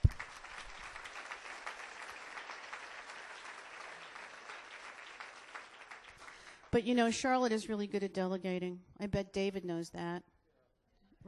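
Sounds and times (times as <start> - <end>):
audience applause: 0.0 - 6.7
speech: 6.8 - 10.3.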